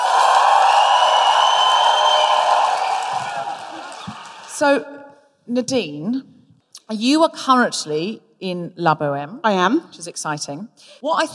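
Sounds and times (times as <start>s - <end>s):
live audience cheering and woo-hooing a welcome for an opera singer: 0.0s - 4.6s
speech: 4.6s - 6.3s, 6.9s - 11.3s.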